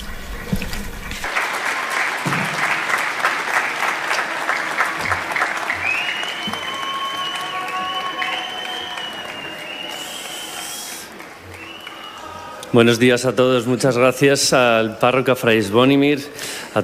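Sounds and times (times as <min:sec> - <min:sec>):
large audience applause welcoming a speaker: 0:01.2 - 0:13.3
speech: 0:12.8 - 0:16.8.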